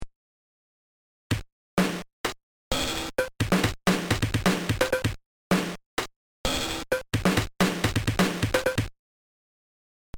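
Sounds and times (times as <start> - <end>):
Casio CTK 150 drum kits for LSDJ: 1.3 - 5.8, 6.5 - 8.9.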